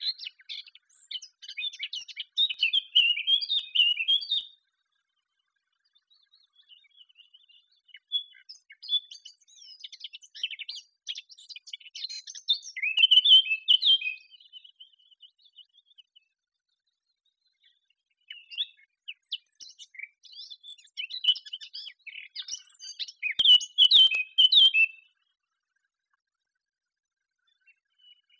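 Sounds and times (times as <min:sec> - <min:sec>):
Eurasian blackcap song: 0:00.0 - 0:04.6, 0:06.3 - 0:16.0, 0:17.6 - 0:25.1, 0:28.0 - 0:28.3.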